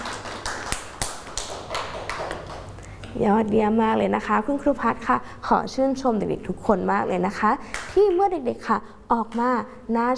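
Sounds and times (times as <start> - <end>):
children clapping hands: 0.0 - 2.7
speech: 3.1 - 10.1.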